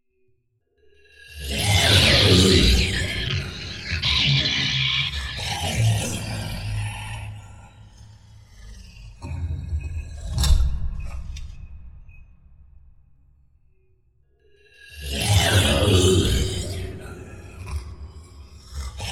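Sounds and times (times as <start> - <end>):
creature growling in a lair: 1.2 - 7.4, 15.0 - 17.9.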